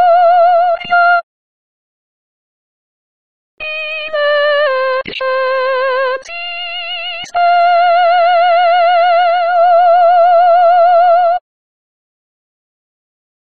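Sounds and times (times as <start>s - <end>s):
soprano singing: 0.0s - 1.2s, 3.6s - 11.4s.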